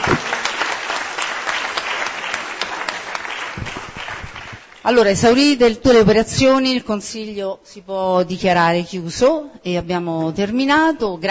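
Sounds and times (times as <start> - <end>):
audience applause: 0.0 - 4.9
speech: 4.9 - 11.2.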